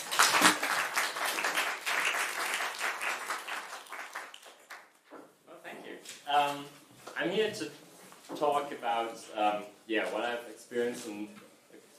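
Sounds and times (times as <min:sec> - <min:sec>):
audience applause: 0:00.0 - 0:04.9
speech: 0:06.3 - 0:11.4.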